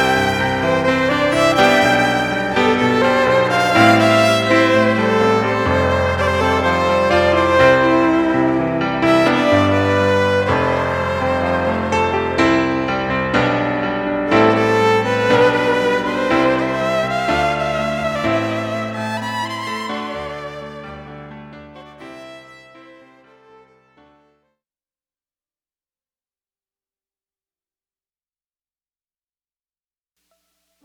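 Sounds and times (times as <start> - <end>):
violin: 0.0 - 24.3
keyboard: 0.0 - 24.4.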